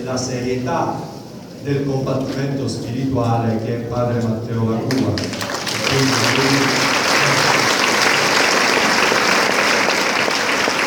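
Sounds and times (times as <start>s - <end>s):
speech: 0.0s - 6.8s
audience applause: 4.9s - 10.8s.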